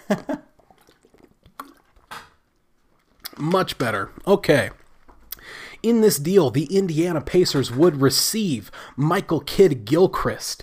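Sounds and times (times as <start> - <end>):
speech: 0.1 - 0.4, 3.4 - 4.8, 5.5 - 10.6
person drinking water: 0.3 - 5.9.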